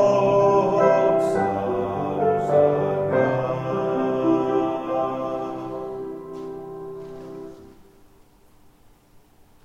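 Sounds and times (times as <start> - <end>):
choir singing a Christmas carol in Greek: 0.0 - 7.7.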